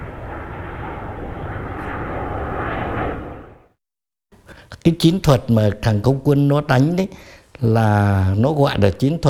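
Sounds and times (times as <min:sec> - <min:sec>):
F-105D fighter jet engine roar: 0:00.0 - 0:03.8
speech: 0:04.8 - 0:09.2.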